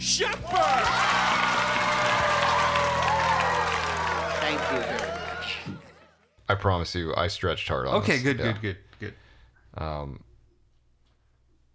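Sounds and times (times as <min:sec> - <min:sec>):
speech: 0:00.0 - 0:01.0, 0:06.5 - 0:09.2, 0:09.8 - 0:10.3
audience applause welcoming a guest onto a stage: 0:00.3 - 0:06.2.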